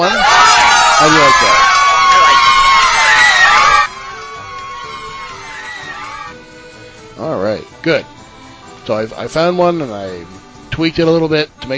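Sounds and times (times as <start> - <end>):
cheering crowd sound effect: 0.0 - 7.1
speech: 1.0 - 1.8, 7.8 - 8.2, 8.8 - 11.7.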